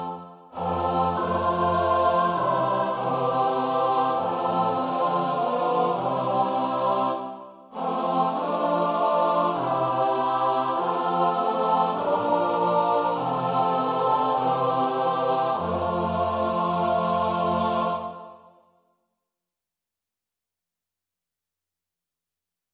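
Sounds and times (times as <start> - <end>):
four-part SATB choir singing: 0.0 - 18.6.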